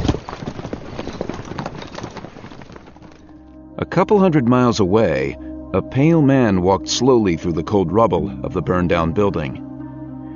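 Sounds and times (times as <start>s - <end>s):
horse galloping: 0.0s - 3.4s
speech: 3.8s - 9.6s.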